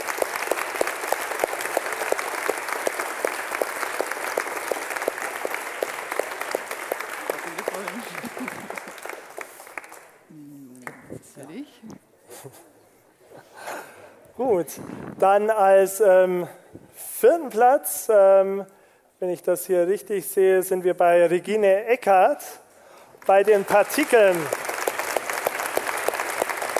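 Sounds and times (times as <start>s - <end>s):
audience applause: 0.0s - 11.0s, 23.2s - 26.7s
laughter: 7.3s - 9.2s, 12.2s - 13.8s
speech: 14.4s - 16.6s, 17.2s - 22.6s, 23.3s - 24.6s.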